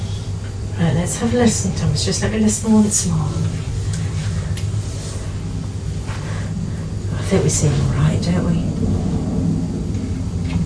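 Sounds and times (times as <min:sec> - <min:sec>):
speech: 0:01.0 - 0:03.8, 0:07.3 - 0:09.2
continuous deep roar: 0:03.6 - 0:10.6.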